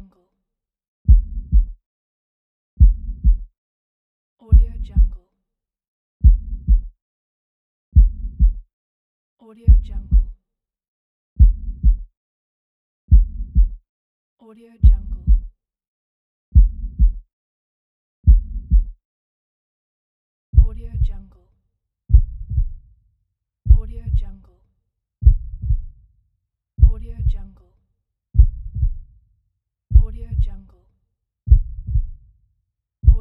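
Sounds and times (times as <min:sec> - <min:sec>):
heartbeat: 0:01.1 - 0:01.8, 0:02.8 - 0:03.5, 0:04.5 - 0:05.2, 0:06.2 - 0:06.9, 0:08.0 - 0:08.6, 0:09.7 - 0:10.3, 0:11.4 - 0:12.1, 0:13.1 - 0:13.8, 0:14.8 - 0:15.5, 0:16.6 - 0:17.2, 0:18.2 - 0:19.0, 0:20.6 - 0:21.2, 0:22.1 - 0:22.8, 0:23.7 - 0:24.3, 0:25.2 - 0:26.0, 0:26.8 - 0:27.5, 0:28.4 - 0:29.1, 0:29.9 - 0:30.6, 0:31.5 - 0:32.2, 0:33.0 - 0:33.2.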